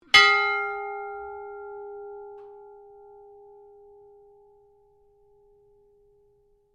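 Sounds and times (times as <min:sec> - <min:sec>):
ship's bell ringing: 0:00.1 - 0:04.3.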